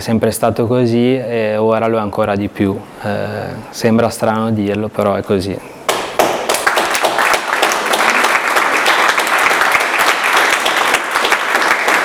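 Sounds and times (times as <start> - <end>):
speech: 0.0 - 5.8
loud audience applause: 5.9 - 12.0.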